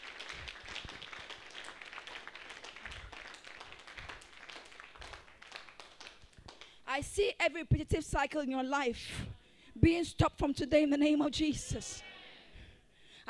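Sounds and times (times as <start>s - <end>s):
audience clapping: 0.0s - 6.9s
speech: 7.0s - 12.1s.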